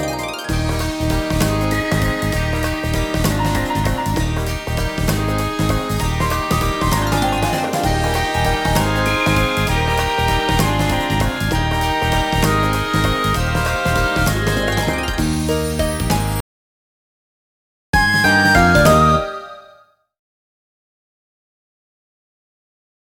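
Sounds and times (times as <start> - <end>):
background music: 0.0 - 16.4, 18.0 - 19.8.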